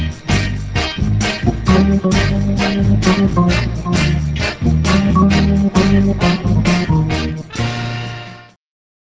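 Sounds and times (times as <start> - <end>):
organ: 0.0 - 8.5.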